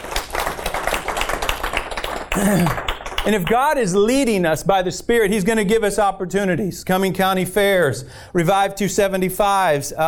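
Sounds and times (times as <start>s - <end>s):
church congregation clapping hands during a service: 0.0s - 3.8s
speech: 2.4s - 10.0s.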